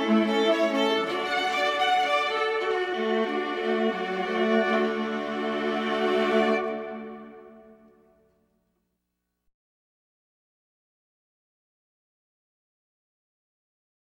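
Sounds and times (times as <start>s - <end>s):
violas: 0.0s - 8.3s.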